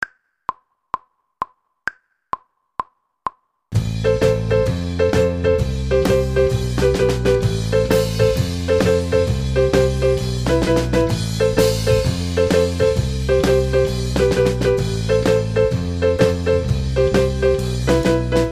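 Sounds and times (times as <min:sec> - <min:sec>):
keyboard section: 0:03.8 - 0:18.5.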